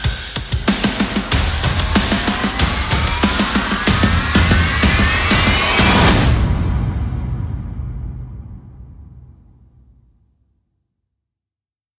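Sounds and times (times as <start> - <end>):
percussion: 0.0 - 9.0.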